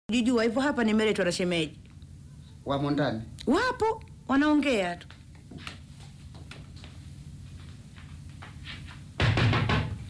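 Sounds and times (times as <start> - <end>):
speech: 0.1 - 1.9, 2.6 - 5.8
loud heavy knocking on a door: 9.2 - 10.0.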